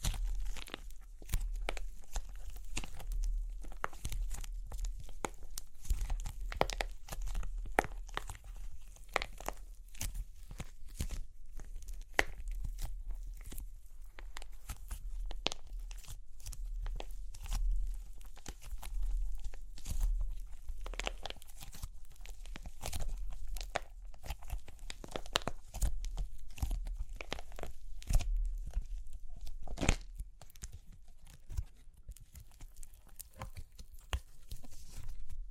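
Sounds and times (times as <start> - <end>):
clay crunching and cracking: 0.0 - 35.5.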